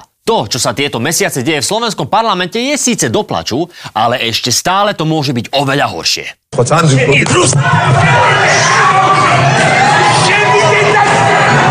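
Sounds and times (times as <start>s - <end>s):
speech: 0.3s - 9.9s
heated crowd shouting in parliament: 7.0s - 11.6s.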